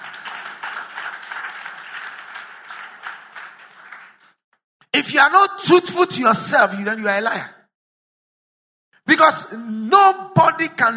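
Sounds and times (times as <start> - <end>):
audience clapping: 0.0 - 4.6
speech: 5.0 - 7.6, 9.1 - 10.9.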